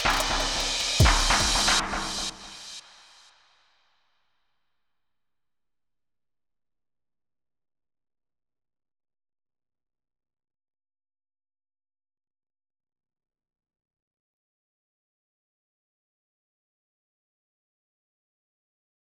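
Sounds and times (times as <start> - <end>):
drums: 0.0 - 3.4.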